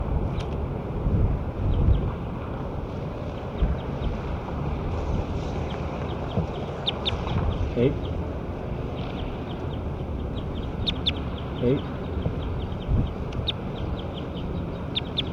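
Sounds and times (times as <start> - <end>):
wind: 0.0 - 15.3
bird chirping outdoors: 5.4 - 8.2, 8.8 - 15.3.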